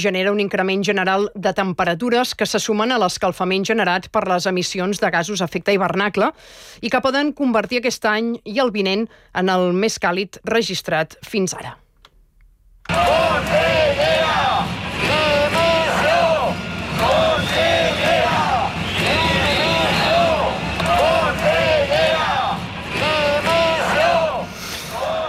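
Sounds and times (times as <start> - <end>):
speech: 0.0 - 11.8
protest crowd chanting slogans in Valencia: 12.9 - 25.2.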